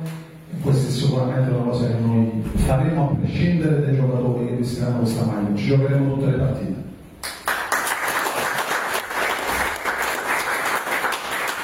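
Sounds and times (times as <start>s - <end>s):
speech: 0.6s - 6.8s
audience applause for the coach: 7.2s - 11.6s.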